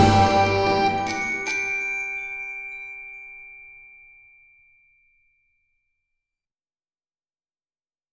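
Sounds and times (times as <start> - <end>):
stereo music: 0.0 - 4.6.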